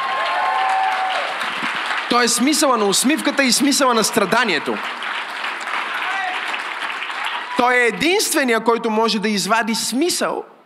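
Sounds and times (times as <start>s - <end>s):
audience applause: 0.0s - 7.9s
speech: 2.1s - 5.1s, 7.6s - 10.6s.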